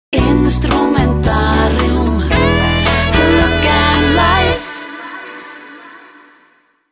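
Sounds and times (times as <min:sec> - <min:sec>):
instrumental music: 0:00.2 - 0:05.1.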